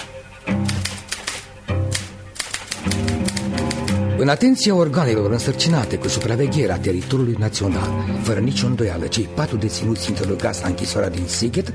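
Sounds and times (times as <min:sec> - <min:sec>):
typewriter typing: 0:00.0 - 0:04.0, 0:05.4 - 0:06.5, 0:10.0 - 0:10.6
speech: 0:04.2 - 0:11.7.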